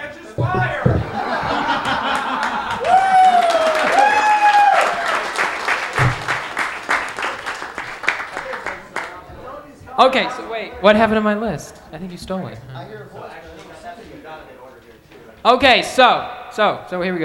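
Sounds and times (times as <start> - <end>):
speech: 0.4 - 1.1, 10.0 - 13.5, 15.4 - 17.2
laughter and voices: 0.4 - 3.4
audience clapping: 0.4 - 9.3
sustained high cheer: 1.1 - 8.6.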